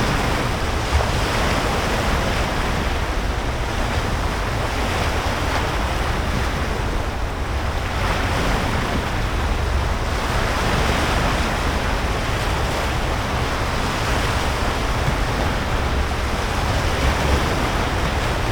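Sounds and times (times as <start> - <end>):
sea recorded with an MKH800 microphone: 0.0 - 18.5.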